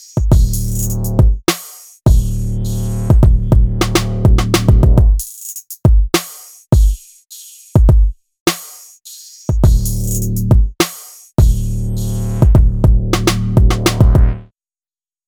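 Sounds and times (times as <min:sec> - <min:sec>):
kick drum loops: 0:00.2 - 0:01.5, 0:02.1 - 0:02.4, 0:03.1 - 0:05.2, 0:05.9 - 0:07.0, 0:07.8 - 0:08.2, 0:09.5 - 0:10.8, 0:11.4 - 0:11.8, 0:12.4 - 0:14.4.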